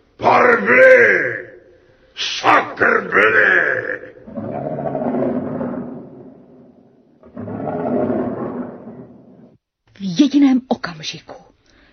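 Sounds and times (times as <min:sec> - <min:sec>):
speech: 0:00.2 - 0:01.4, 0:11.0 - 0:11.4
lion roaring: 0:02.8 - 0:09.6.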